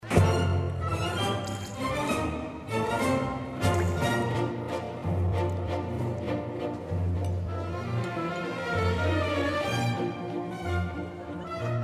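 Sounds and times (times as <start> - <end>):
waltz music: 0.0 - 11.8.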